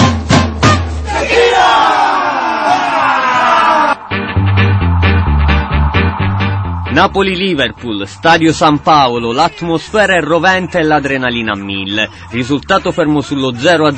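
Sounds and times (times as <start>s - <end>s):
heavy beats: 0.0s - 1.8s, 3.4s - 9.6s
football fans shouting a battle cry: 1.0s - 4.1s
speech: 7.0s - 13.9s.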